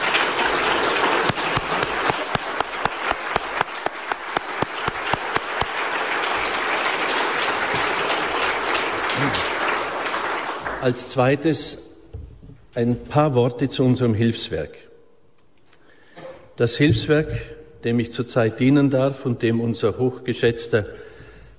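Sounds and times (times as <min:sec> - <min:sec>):
sharp individual claps: 0:00.0 - 0:10.8
audience applause: 0:00.0 - 0:11.2
speech: 0:10.8 - 0:11.9, 0:12.8 - 0:14.8, 0:16.6 - 0:21.0.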